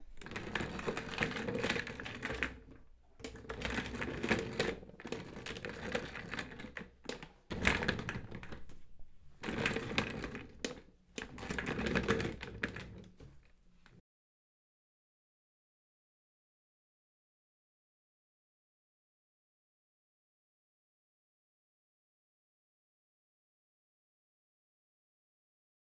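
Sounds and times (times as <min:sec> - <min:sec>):
chair: 0:00.0 - 0:14.0.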